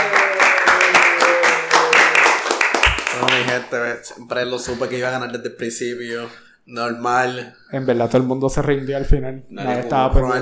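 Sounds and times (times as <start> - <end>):
voiced whoops or cheers: 0.0 - 3.1
applause: 0.0 - 3.7
speech: 3.6 - 10.4.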